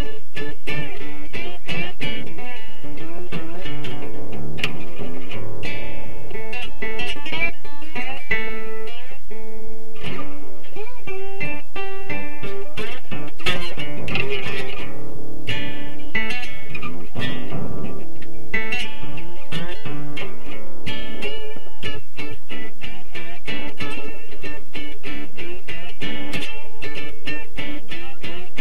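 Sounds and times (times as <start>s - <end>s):
slide guitar blues: 0.0s - 28.6s.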